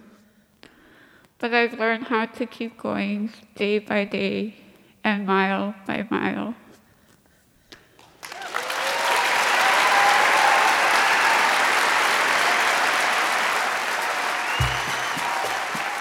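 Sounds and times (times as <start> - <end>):
speech: 1.4 - 6.6
standing ovation from an audience of about 1,200 people in Anchorage: 8.0 - 15.9.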